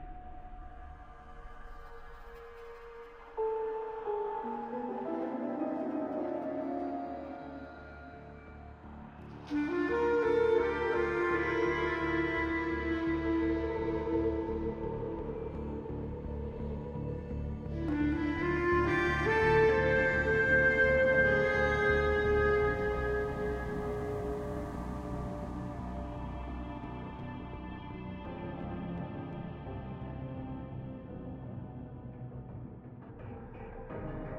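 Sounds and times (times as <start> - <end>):
theme music: 3.4 - 29.7.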